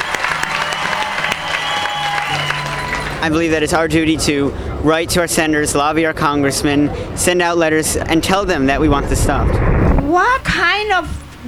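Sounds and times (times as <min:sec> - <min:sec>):
crowd applauding: 0:00.0 - 0:03.3
speech: 0:03.2 - 0:11.4.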